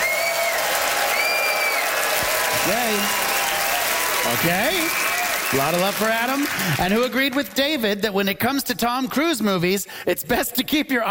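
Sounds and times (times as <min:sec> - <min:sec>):
whistles: 0:00.0 - 0:01.9
cheers: 0:00.0 - 0:07.3
crowd applause vote: 0:00.0 - 0:07.9
speech: 0:02.6 - 0:03.3, 0:04.2 - 0:11.0.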